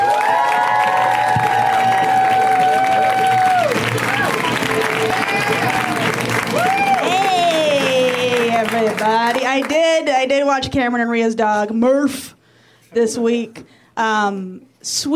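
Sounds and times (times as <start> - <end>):
audience applause: 0.0 - 9.8
speech: 9.6 - 15.1.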